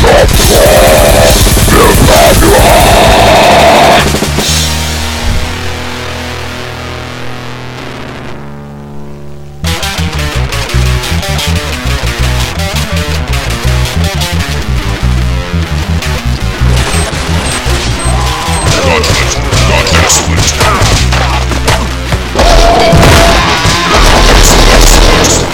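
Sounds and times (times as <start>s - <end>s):
vocals: 0.0s - 4.1s, 18.0s - 25.5s
chainsaw-like guitar: 0.0s - 25.5s.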